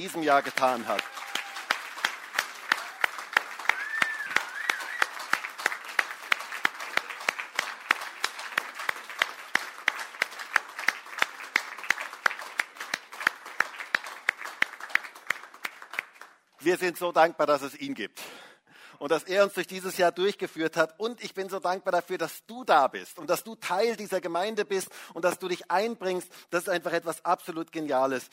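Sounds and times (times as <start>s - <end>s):
speech: 0.0s - 1.2s, 16.6s - 18.3s, 19.0s - 28.3s
audience applause: 0.0s - 16.5s
faint whistles and cheers: 0.9s - 1.8s, 2.7s - 5.4s.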